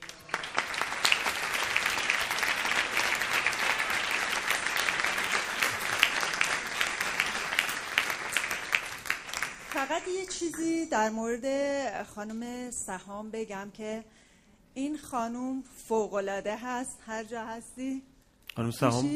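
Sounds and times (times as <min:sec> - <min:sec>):
crowd applauding: 0:00.0 - 0:10.1
speech: 0:09.9 - 0:14.2, 0:14.8 - 0:19.1.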